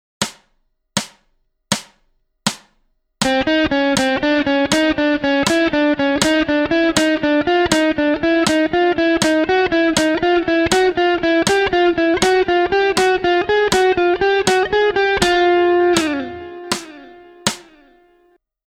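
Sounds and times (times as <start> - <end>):
slow music: 3.2 - 18.1.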